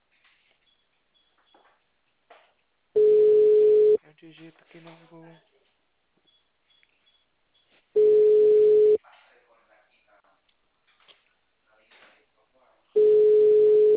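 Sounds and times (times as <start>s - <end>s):
telephone line tone: 3.0s - 4.0s, 8.0s - 9.0s, 13.0s - 13.9s
speech: 4.2s - 5.6s.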